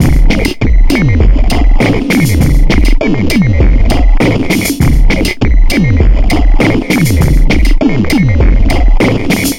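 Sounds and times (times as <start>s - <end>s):
beat loop: 0.0s - 9.5s.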